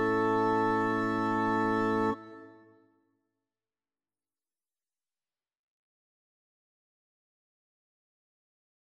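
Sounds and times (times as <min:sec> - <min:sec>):
acrostic chorale: 0:00.0 - 0:02.7.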